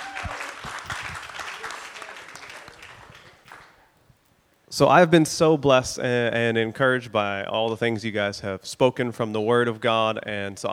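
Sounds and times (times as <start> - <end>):
audience round of applause: 0.0 - 3.9
speech: 4.7 - 10.7.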